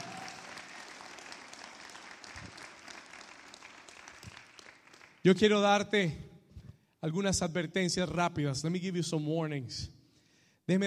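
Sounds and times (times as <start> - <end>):
loud applause: 0.0 - 5.3
speech: 5.2 - 6.2, 7.0 - 10.0.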